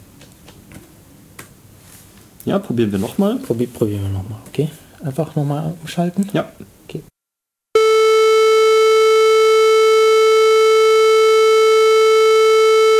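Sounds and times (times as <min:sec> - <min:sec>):
speech: 0:02.4 - 0:07.1
sine wave test tone: 0:07.8 - 0:12.9.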